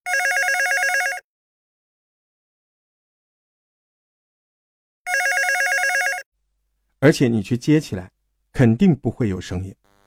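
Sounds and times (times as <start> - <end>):
telephone ringing: 0.1 - 1.2, 5.1 - 6.3
speech: 7.0 - 9.9.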